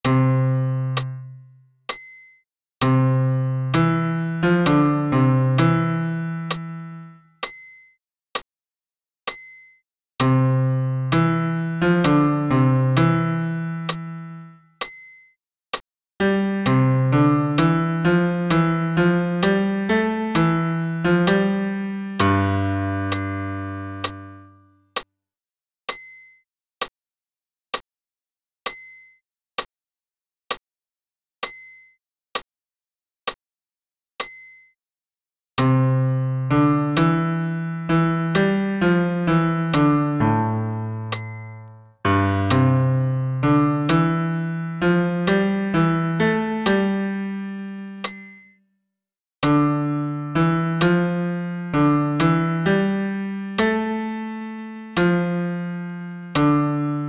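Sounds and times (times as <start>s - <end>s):
solo piano in the low register: 0.0s - 1.6s, 2.8s - 7.3s, 10.2s - 14.6s, 16.2s - 24.7s, 35.6s - 48.1s, 49.4s - 57.0s.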